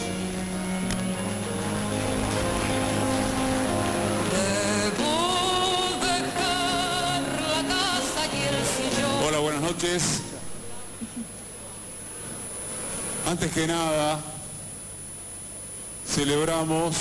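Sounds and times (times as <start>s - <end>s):
crowd applause: 0.0s - 9.5s
loud music with sustained tones and a rising melody: 0.0s - 9.5s
speech: 9.8s - 10.3s, 13.3s - 14.3s, 16.2s - 17.0s.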